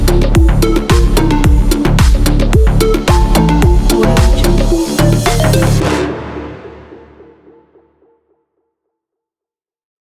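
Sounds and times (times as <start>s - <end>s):
tech slap bass tune: 0.0s - 6.7s.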